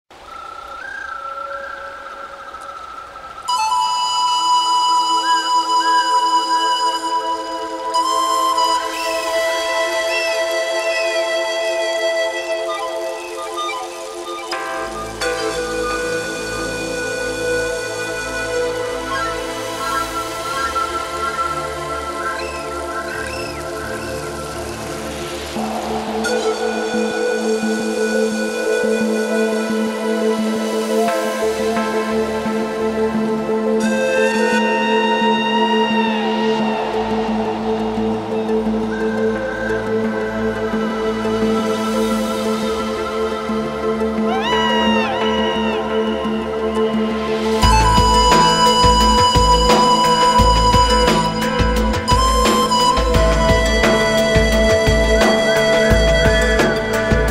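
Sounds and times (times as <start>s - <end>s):
pan flute: 0.1s - 57.3s.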